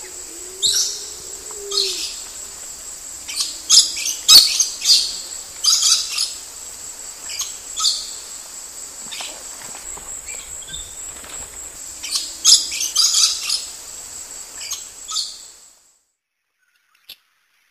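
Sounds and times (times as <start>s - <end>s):
lorikeet screeching: 0.0s - 6.4s
steady high hiss: 0.0s - 15.9s.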